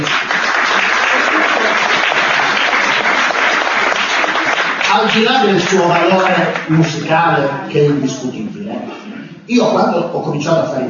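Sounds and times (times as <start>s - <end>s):
audience applause for a musician: 0.0s - 7.3s
speech: 5.0s - 10.8s.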